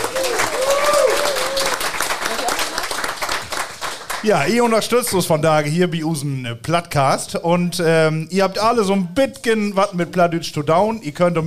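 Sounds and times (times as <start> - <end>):
audience applause: 0.0 - 4.8
speech: 4.2 - 11.4.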